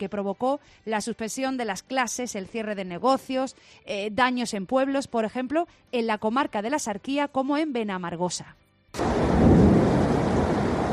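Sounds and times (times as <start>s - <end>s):
speech: 0.0s - 9.0s
flooded Benamargosa river rushing through village: 9.0s - 10.9s.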